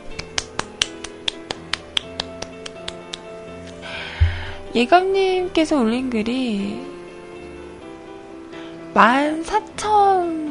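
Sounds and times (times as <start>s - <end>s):
hands clapping: 0.0s - 3.3s
speech: 4.7s - 6.9s, 9.0s - 10.4s.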